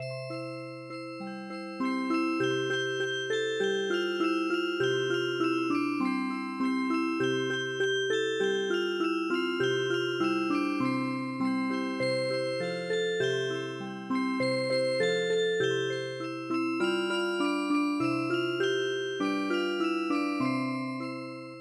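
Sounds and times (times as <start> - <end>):
traditional music box: 0.0 - 21.5.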